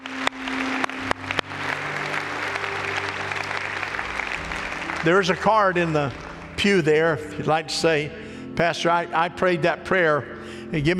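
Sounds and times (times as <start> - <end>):
audience applause: 0.0 - 7.4
speech: 5.0 - 10.9.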